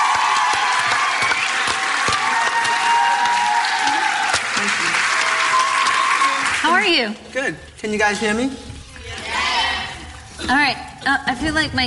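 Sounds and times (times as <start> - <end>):
faint cheers and calls: 0.0 - 6.6
crowd applause: 0.0 - 7.0
speech: 6.9 - 8.6, 10.5 - 11.8.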